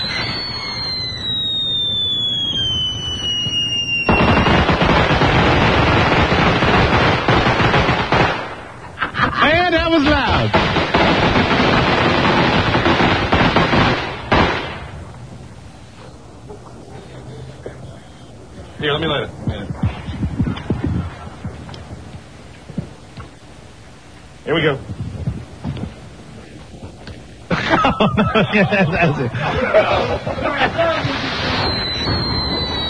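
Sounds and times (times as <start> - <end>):
shrill firework whistle sliding downward: 0.0 - 4.7, 31.1 - 32.8
fireworks exploding in rapid crackling bursts and pops: 0.0 - 16.8, 18.4 - 23.4, 24.1 - 27.5, 30.5 - 32.8
laughter: 9.0 - 9.7, 27.5 - 31.3.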